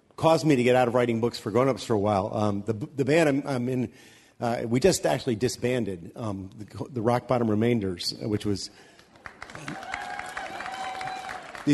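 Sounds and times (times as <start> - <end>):
speech: 0.2 - 10.0
audience applause: 9.1 - 11.7.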